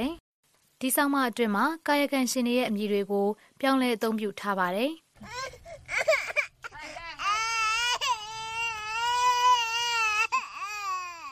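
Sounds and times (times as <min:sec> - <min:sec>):
speech: 0:00.8 - 0:06.2
small child crying in a village: 0:05.2 - 0:11.3.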